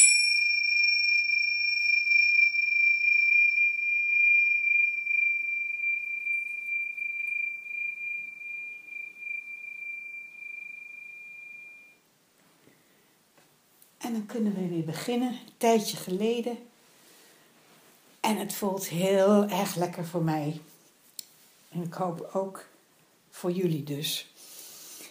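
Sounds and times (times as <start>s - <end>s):
small bell ringing: 0.0s - 12.0s
speech: 14.1s - 16.7s, 18.3s - 20.7s, 21.8s - 22.7s, 23.4s - 24.4s.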